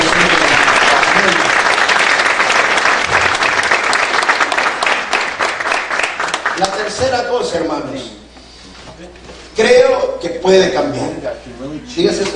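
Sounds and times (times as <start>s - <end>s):
loud audience applause: 0.0s - 7.0s
speech: 7.0s - 8.2s, 9.6s - 12.3s.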